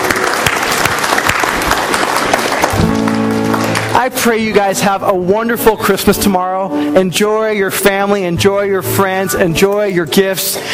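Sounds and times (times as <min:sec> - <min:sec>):
church congregation applause at a Christmas service: 0:00.0 - 0:04.6
sustained musical tones: 0:02.9 - 0:10.6
speech: 0:04.0 - 0:10.7.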